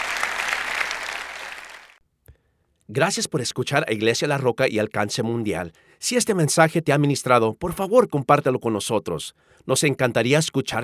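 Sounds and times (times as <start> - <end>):
audience applause: 0.0 - 2.0
speech: 2.9 - 10.8.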